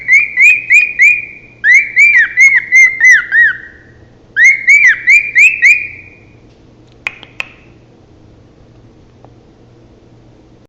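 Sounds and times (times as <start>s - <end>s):
male cockatiel whistling: 0.0s - 6.3s.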